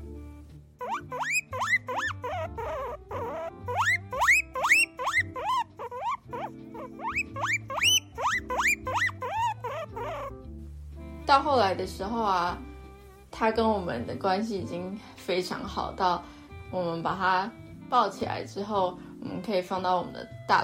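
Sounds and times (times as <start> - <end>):
caged pet guinea pig squealing excitedly: 0.8 - 10.4
speech: 11.3 - 12.7, 13.4 - 20.6.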